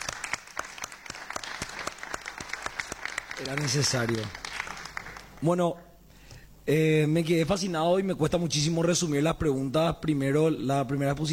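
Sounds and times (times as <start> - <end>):
conference audience applauding a panel of speakers: 0.0 - 5.4
speech: 3.4 - 4.4, 5.4 - 5.9, 6.7 - 11.3.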